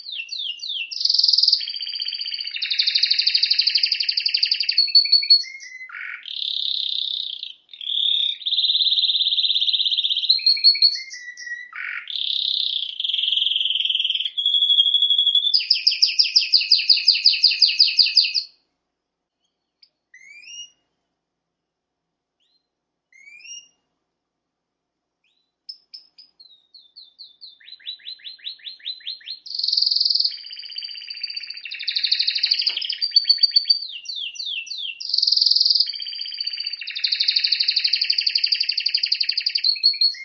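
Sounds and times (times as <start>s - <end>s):
canary song: 0.0s - 18.6s, 19.3s - 20.9s, 22.4s - 23.9s, 25.2s - 40.2s.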